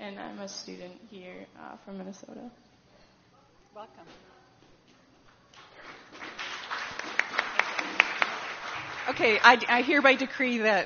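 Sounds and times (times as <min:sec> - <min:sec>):
speech: 0:00.4 - 0:02.7, 0:03.7 - 0:04.4, 0:09.0 - 0:10.8
small group clapping for a person: 0:05.5 - 0:10.7.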